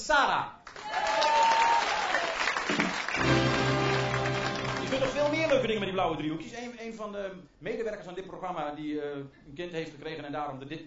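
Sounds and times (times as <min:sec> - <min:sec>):
speech: 0:00.0 - 0:00.6, 0:05.0 - 0:10.8
enthusiastic crowd applause: 0:00.8 - 0:06.0.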